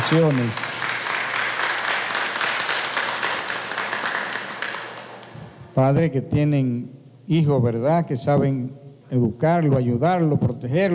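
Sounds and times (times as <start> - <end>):
crowd applauding: 0.0 - 5.2
speech: 0.1 - 0.6, 5.8 - 10.9.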